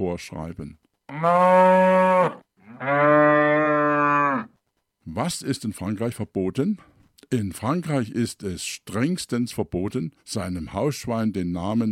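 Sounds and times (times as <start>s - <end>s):
speech: 0.0s - 3.3s, 5.1s - 11.9s
cow mooing: 1.1s - 4.5s.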